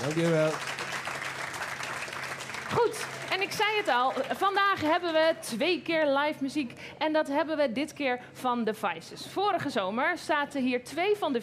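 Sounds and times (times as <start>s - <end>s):
audience applause: 0.0s - 5.3s
speech: 0.1s - 0.7s, 2.7s - 11.4s.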